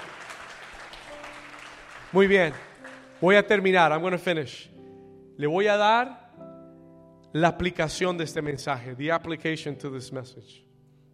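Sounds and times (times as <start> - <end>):
audience applause: 0.0 - 3.4
speech: 2.1 - 4.7, 5.4 - 6.2, 7.3 - 10.7.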